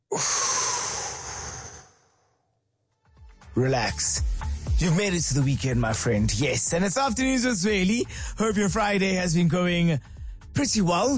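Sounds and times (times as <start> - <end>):
person taking a deep breath: 0.0 - 2.5, 8.0 - 8.4, 10.0 - 10.5
speech: 0.2 - 0.5, 3.6 - 11.1.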